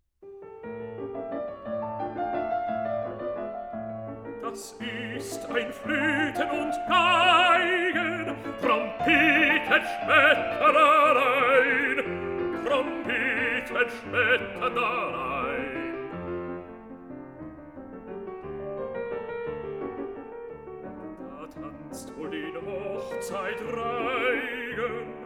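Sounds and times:
piano: 0.0s - 25.2s
person singing a song cycle: 4.4s - 16.1s, 21.3s - 25.2s.

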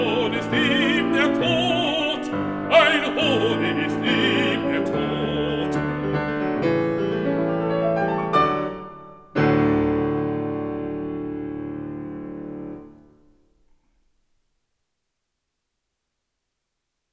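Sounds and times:
person singing: 0.0s - 6.0s
piano: 0.0s - 13.8s.

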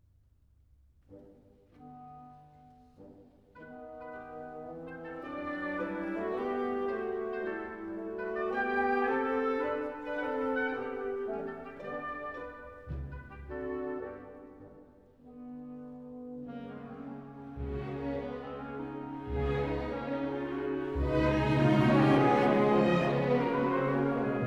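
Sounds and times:
orchestral piece in allegretto: 1.1s - 24.4s.

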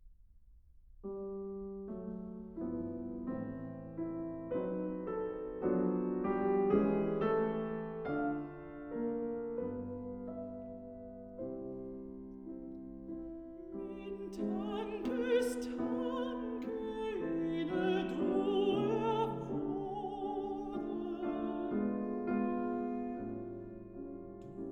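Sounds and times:
piano: 0.0s - 24.7s
person singing with piano: 13.8s - 23.2s.

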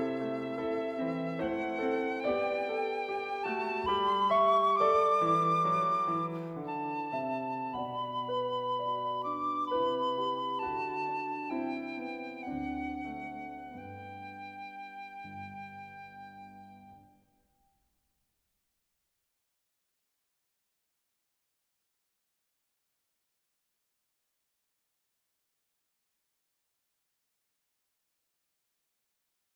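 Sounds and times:
piccolo: 0.0s - 17.1s
piano: 0.0s - 17.2s.

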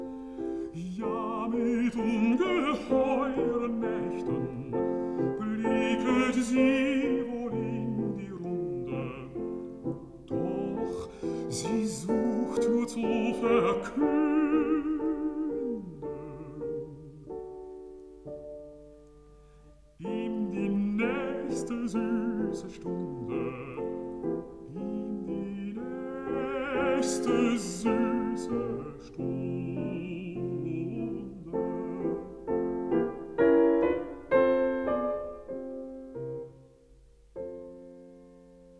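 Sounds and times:
person singing: 0.0s - 17.6s, 20.0s - 33.1s
piano: 0.0s - 38.7s.

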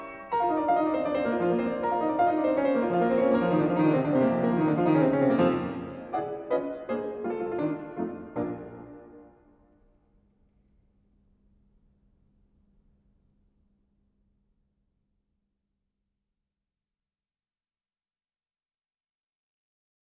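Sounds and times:
presto for piano in B flat major: 0.0s - 10.0s.

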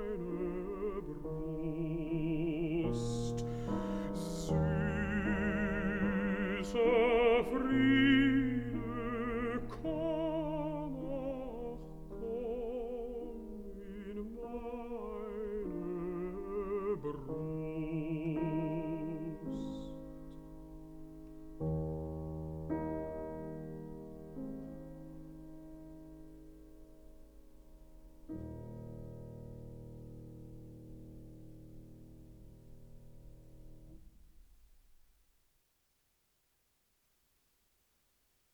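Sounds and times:
person singing: 0.0s - 20.3s
piano: 0.0s - 35.5s.

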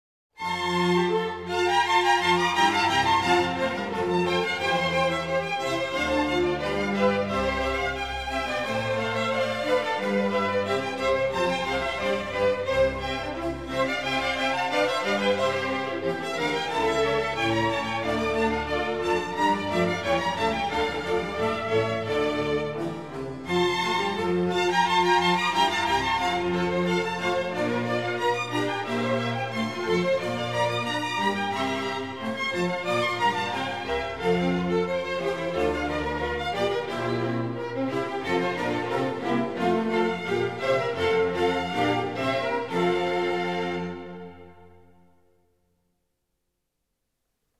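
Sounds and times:
concerto grosso in F major: 0.4s - 45.4s.

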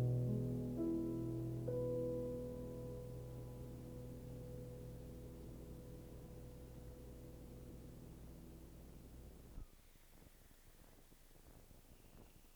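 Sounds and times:
piano prelude in E major: 0.0s - 9.4s.

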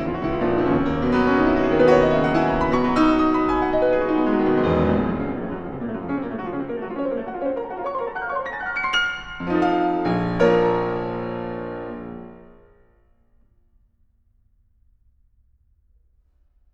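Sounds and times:
fast fiery piano piece: 0.0s - 12.9s.

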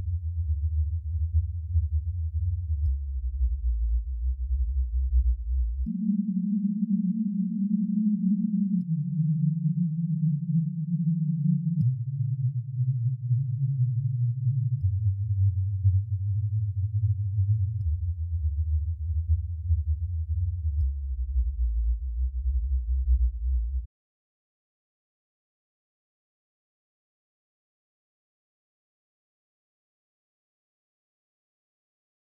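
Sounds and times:
subwoofer phase test tone: 0.0s - 23.9s.

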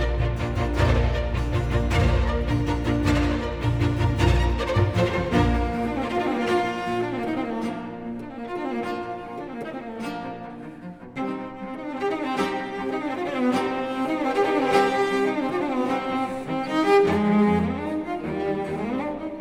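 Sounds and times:
cello: 0.0s - 19.3s
continuo: 0.0s - 19.3s
strings: 0.0s - 19.3s.

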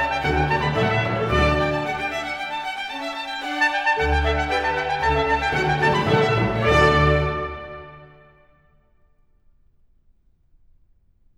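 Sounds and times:
sonata for trumpet, strings and continuo, allegro: 0.0s - 8.8s.

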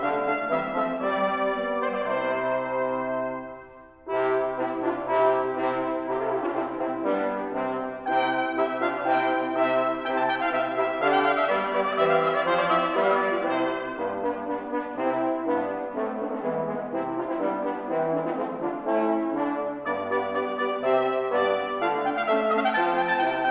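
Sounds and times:
brass quintet playing a Renaissance or Baroque sonata: 0.0s - 23.4s.

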